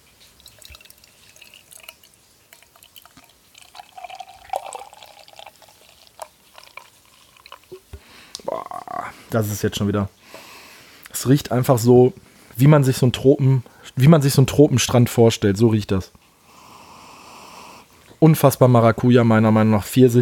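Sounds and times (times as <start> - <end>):
beer being poured into glass: 0.4 - 7.9
speech: 8.5 - 10.2, 11.2 - 16.2, 18.2 - 20.2.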